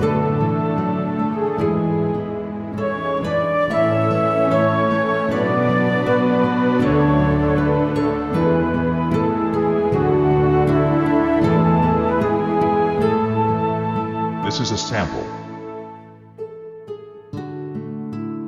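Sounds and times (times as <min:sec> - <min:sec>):
bright lyrical flute music: 0:00.0 - 0:17.9.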